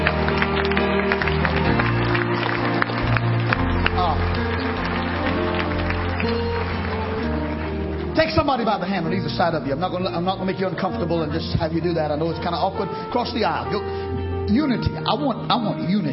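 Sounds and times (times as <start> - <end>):
audience clapping hands: 0.0 - 10.4
speech: 8.5 - 16.1.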